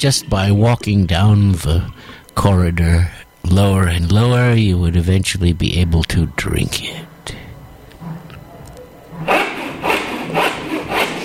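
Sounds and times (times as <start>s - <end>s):
speech: 0.0s - 7.4s
sawing through giant mushrooms: 9.1s - 11.2s.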